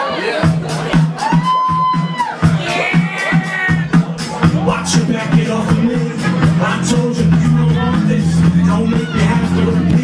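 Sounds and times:
rhythmic pulse: 0.5s - 10.0s
live audience cheering and whooping: 1.1s - 3.9s.

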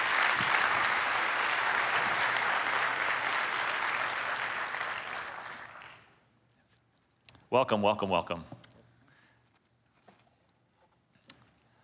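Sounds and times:
audience applause welcoming guests onto a platform: 0.0s - 6.2s
speech: 7.5s - 8.6s.

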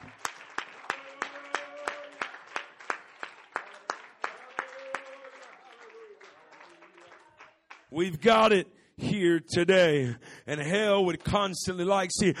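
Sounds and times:
audience clapping hands: 0.0s - 8.4s, 10.6s - 12.3s
speech: 7.9s - 12.3s.

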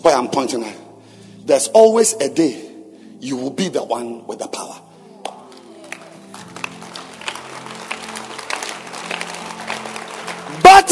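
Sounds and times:
speech: 0.0s - 0.8s, 1.4s - 4.8s, 10.6s - 10.9s
audience clapping: 5.2s - 10.9s.

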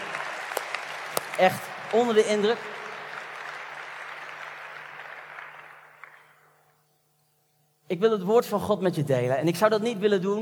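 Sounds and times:
audience applause: 0.0s - 6.3s
speech: 1.4s - 2.8s, 7.9s - 10.4s.

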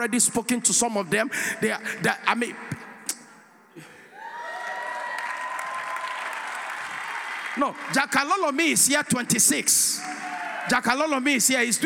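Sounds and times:
speech: 0.0s - 2.8s, 7.6s - 11.8s
audience clapping: 4.4s - 8.8s.

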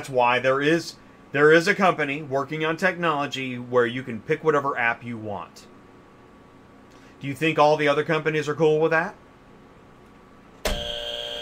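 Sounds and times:
speech: 0.0s - 5.7s, 7.2s - 9.2s
buzzer: 10.6s - 11.4s.

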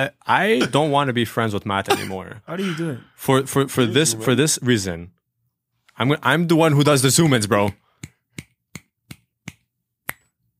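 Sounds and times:
speech: 0.0s - 5.2s, 6.0s - 7.8s
finger snapping: 7.7s - 10.3s.

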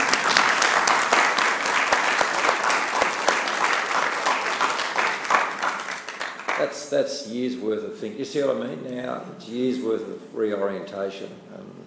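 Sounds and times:
audience applause: 0.0s - 6.7s
speech: 6.6s - 11.7s.

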